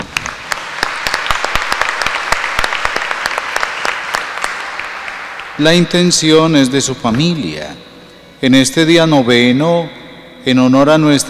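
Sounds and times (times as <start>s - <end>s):
audience applauding: 0.0s - 6.9s
speech: 5.6s - 11.2s.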